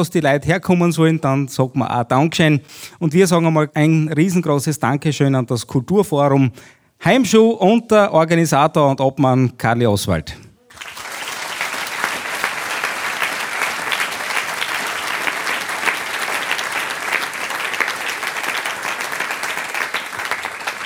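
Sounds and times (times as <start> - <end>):
speech: 0.0 - 10.9
audience applause: 10.7 - 20.8.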